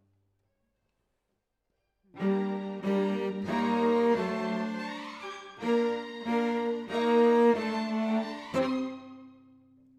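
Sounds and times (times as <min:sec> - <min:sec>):
cello solo: 0:02.2 - 0:09.5.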